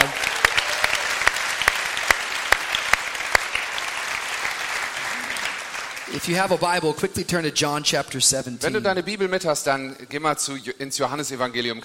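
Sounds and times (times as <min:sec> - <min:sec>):
audience applause: 0:00.0 - 0:06.3
speech: 0:06.3 - 0:11.8.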